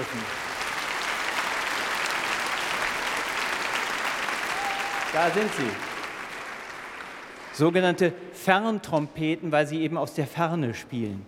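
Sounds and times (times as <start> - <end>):
audience applause: 0.0 - 7.8
speech: 5.1 - 5.9, 7.6 - 11.2.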